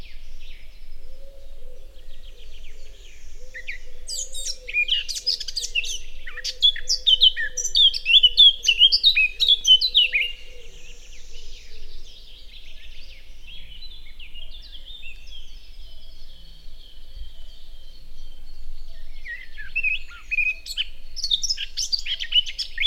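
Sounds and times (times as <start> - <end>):
Eurasian blackcap warbling song: 0.0 - 22.8.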